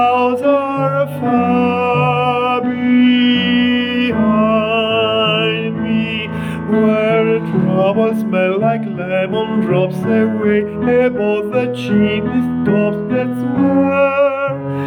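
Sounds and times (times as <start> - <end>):
tenors singing: 0.0 - 14.8.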